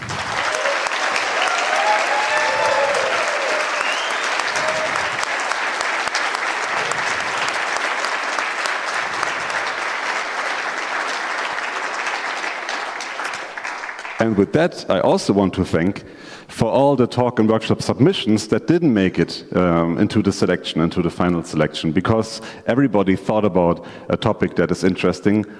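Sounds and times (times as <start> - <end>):
audience applause for conference speakers: 0.0 - 14.4
speech: 14.3 - 25.5.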